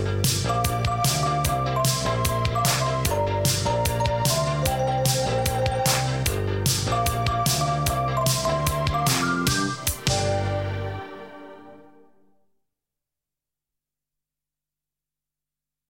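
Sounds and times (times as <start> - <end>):
jingle: 0.2 - 12.1.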